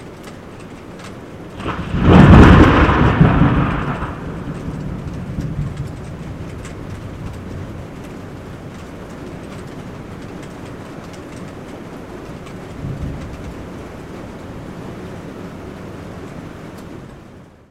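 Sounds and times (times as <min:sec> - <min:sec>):
thunder: 0:01.6 - 0:08.6, 0:12.7 - 0:13.9.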